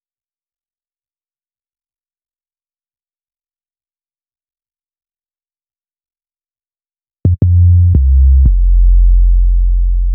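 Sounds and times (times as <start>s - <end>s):
hip-hop bass: 7.3s - 10.1s.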